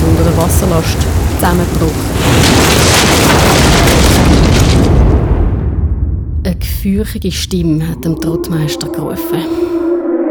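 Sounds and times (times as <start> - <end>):
thunder during a storm: 0.0 - 6.5
speech: 0.4 - 3.4, 6.8 - 9.8.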